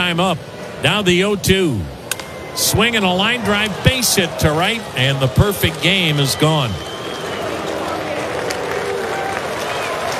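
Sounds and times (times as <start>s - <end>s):
speech: 0.0s - 2.0s, 2.6s - 6.9s
baseball stadium crowd clapping and cheering: 3.2s - 10.1s
shouts and whistles: 6.1s - 7.8s.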